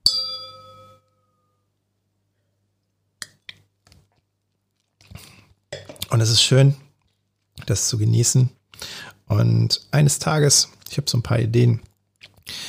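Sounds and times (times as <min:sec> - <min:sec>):
wine glasses clinking in a toast: 0:00.0 - 0:01.5
speech: 0:06.1 - 0:06.9, 0:07.7 - 0:11.9.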